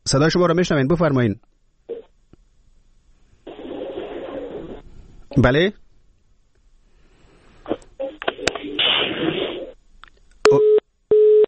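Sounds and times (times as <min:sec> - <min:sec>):
speech: 0:00.1 - 0:01.5, 0:05.4 - 0:05.8
garbled telephone line noise: 0:03.4 - 0:05.5, 0:07.7 - 0:09.8
telephone busy tone beeps after a call to a reporter cuts off: 0:10.5 - 0:11.4.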